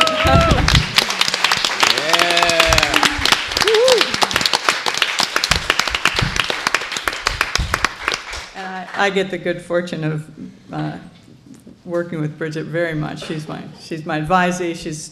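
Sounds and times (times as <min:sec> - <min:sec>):
audience applause: 0:00.0 - 0:09.0
speech: 0:09.0 - 0:11.2, 0:11.9 - 0:15.0.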